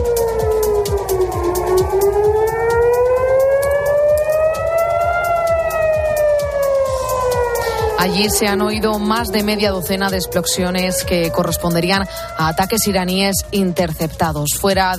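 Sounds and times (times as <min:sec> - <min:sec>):
air raid sirens wailing: 0:00.0 - 0:14.9
steady rumbling background: 0:00.0 - 0:14.9
speech: 0:08.1 - 0:14.9.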